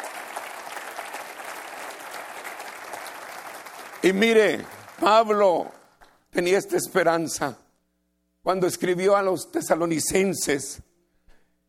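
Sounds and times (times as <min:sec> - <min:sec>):
audience applause: 0:00.0 - 0:06.0
speech: 0:04.0 - 0:07.6, 0:08.4 - 0:10.8.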